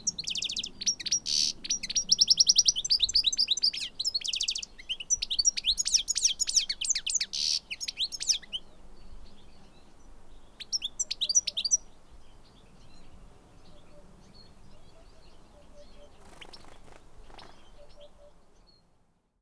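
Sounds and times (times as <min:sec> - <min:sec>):
goldfinch Carduelis carduelis singing: 0:00.0 - 0:18.8.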